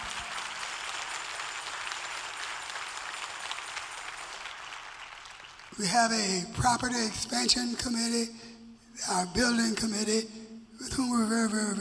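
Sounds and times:
audience applauding: 0.0 - 5.9
speech: 5.8 - 11.8.

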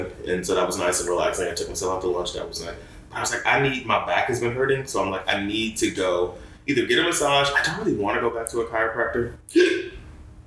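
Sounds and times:
speech: 0.0 - 10.0
hiccup: 9.5 - 10.0.

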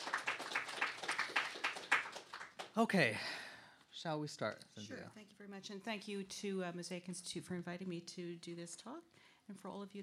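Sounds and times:
light audience applause: 0.0 - 3.1
speech: 2.8 - 3.4, 4.0 - 10.0.

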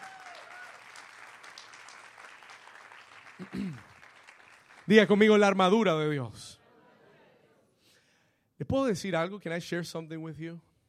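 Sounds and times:
people clapping: 0.0 - 6.0
speech: 3.4 - 3.9, 4.9 - 6.6, 8.7 - 10.7.

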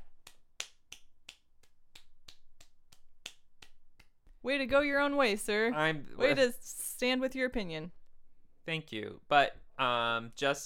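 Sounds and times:
lone person clapping: 0.0 - 4.4
speech: 4.4 - 8.0, 8.7 - 10.6.

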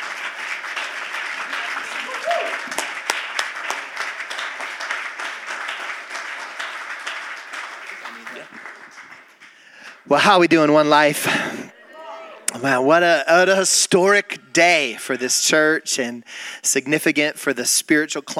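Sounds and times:
church congregation applauding: 0.0 - 11.0
speech: 10.1 - 11.6, 12.6 - 18.3.

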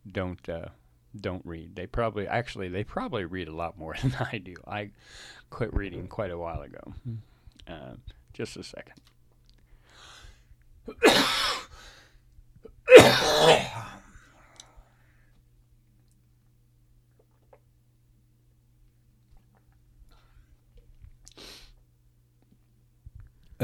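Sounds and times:
speech: 0.2 - 9.1
coughing fit: 10.9 - 11.7, 12.6 - 14.1.

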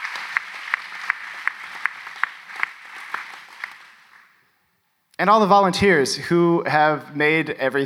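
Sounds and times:
audience applause: 0.0 - 4.3
speech: 5.2 - 7.8.

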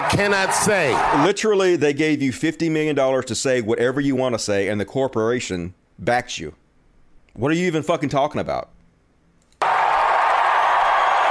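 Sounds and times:
crowd cheering and clapping: 0.0 - 1.2, 9.6 - 11.3
speech: 0.1 - 6.6, 7.4 - 8.7.

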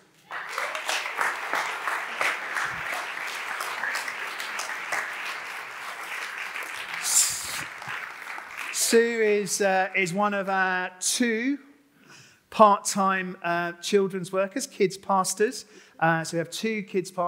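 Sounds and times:
audience applause: 0.0 - 9.4
speech: 8.9 - 11.7, 12.6 - 17.2.

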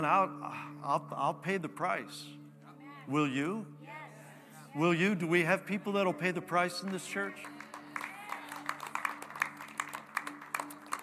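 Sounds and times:
speech: 0.0 - 2.4, 3.1 - 3.8, 4.7 - 7.6
audience clapping: 6.6 - 11.0.

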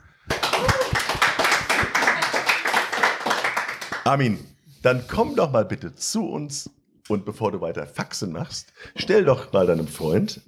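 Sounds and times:
audience applause: 0.3 - 4.1
speech: 4.1 - 10.4.

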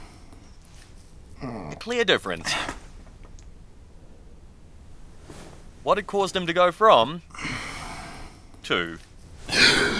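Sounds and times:
speech: 1.4 - 2.8, 5.8 - 7.3, 8.6 - 9.9
man gasping as he wakes suddenly from a dream: 7.3 - 8.4, 9.5 - 9.9.

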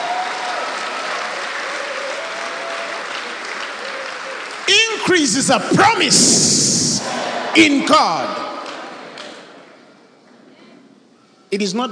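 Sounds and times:
audience hand clapping in praise: 0.0 - 9.5
speech: 5.0 - 8.4, 11.5 - 11.9.

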